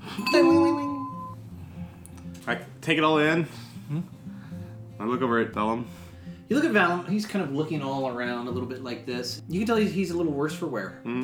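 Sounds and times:
little shop door bell ringing: 0.0 - 1.4
speech: 2.5 - 4.2, 5.0 - 11.2.

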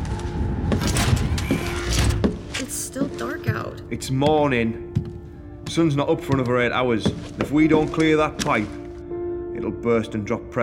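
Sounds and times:
door closing: 0.7 - 2.8
speech: 1.5 - 1.7, 3.0 - 4.9, 5.7 - 8.8, 9.6 - 10.6.

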